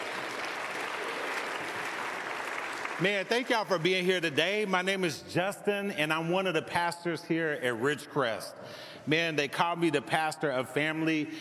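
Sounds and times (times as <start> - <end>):
church congregation applauding the praise team: 0.0 - 4.3
speech: 3.0 - 11.3.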